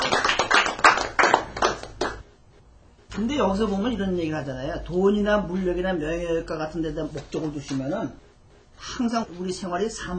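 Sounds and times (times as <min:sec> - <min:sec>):
audience clapping: 0:00.0 - 0:02.3
speech: 0:03.2 - 0:08.2, 0:08.8 - 0:10.1.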